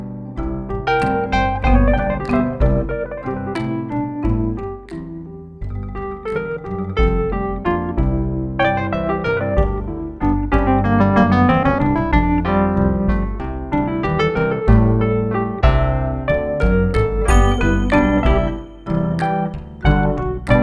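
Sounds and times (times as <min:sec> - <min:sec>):
Wurly electric piano: 0:00.0 - 0:20.6.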